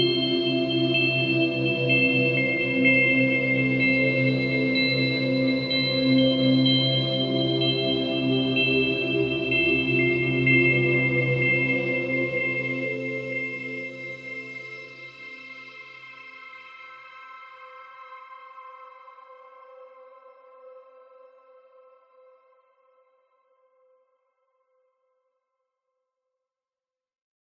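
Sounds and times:
tranquil dreamy light warm twinkly melody: 0.0 - 16.4.

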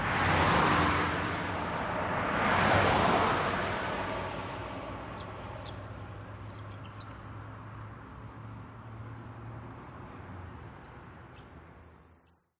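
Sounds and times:
vehicles passing fast on a road: 0.0 - 12.2
quiet birds: 4.6 - 12.5.

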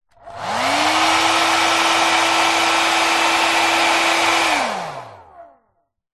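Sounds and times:
household hairdryer switched on and off: 0.1 - 5.5.

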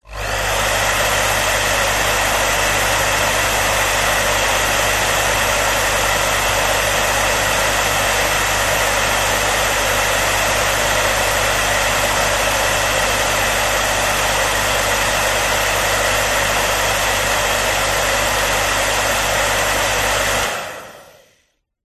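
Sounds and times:
household hairdryer running: 0.0 - 21.5.

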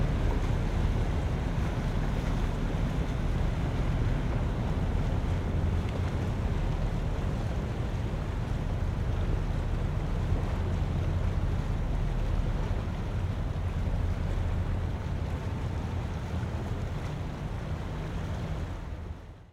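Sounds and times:
large vessel passing by in a harbour: 0.0 - 19.5.

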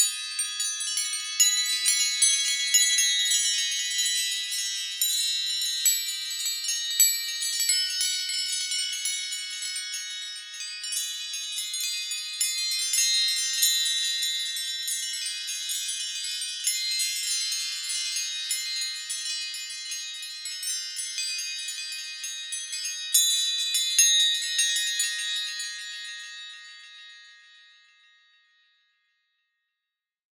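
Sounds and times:
small gentle metallic synthesized windchimes: 0.0 - 29.1.

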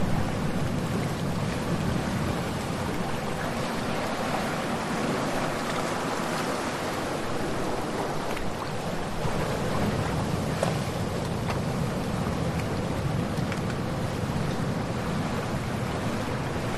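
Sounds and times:
ocean waves splashing against rocks in shallow water rockpools: 0.0 - 16.7.

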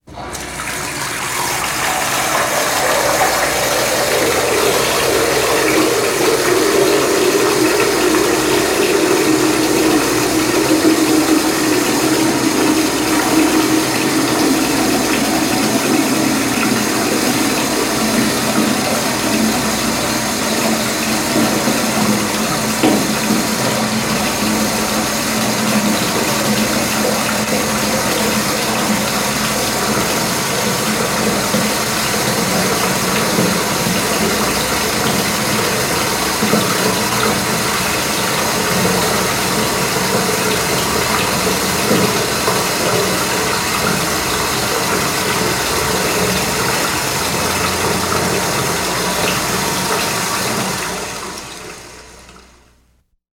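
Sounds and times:
household bath filling with water: 0.0 - 53.1.

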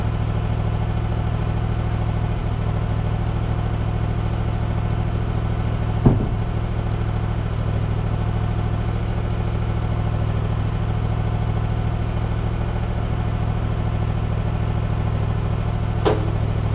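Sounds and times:
industrial generator or diesel machine engine idling: 0.0 - 16.7
workmen operating beside the generator: 16.0 - 16.6.

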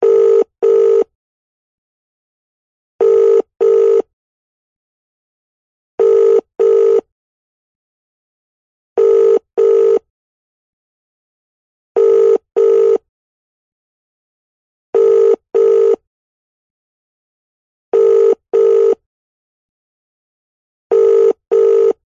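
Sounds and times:
UK household telephone ringing through a speaker: 0.0 - 1.1, 3.0 - 4.1, 6.0 - 7.1, 9.0 - 10.0, 12.0 - 13.0, 15.0 - 16.0, 18.0 - 19.0, 20.9 - 22.0.

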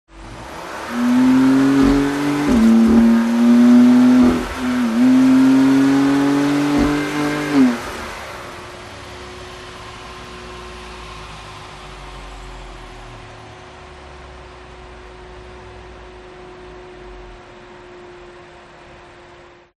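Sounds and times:
BMW M4 car accelerating and decelerating: 0.1 - 13.2.

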